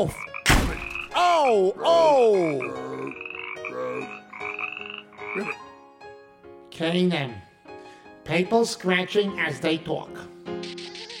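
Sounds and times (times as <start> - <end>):
speech: 0.0 - 0.2, 1.4 - 3.2, 6.8 - 7.5, 8.3 - 10.8
frog croaking: 0.0 - 1.2, 2.2 - 5.7.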